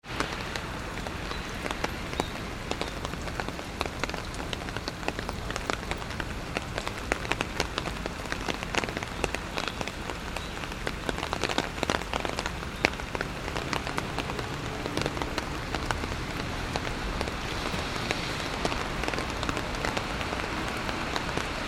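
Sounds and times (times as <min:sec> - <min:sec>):
rain: 0:00.0 - 0:21.6.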